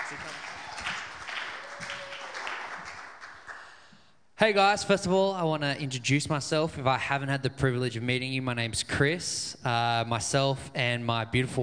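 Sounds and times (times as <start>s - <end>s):
crowd clapping and cheering: 0.0s - 3.9s
speech: 4.4s - 11.6s.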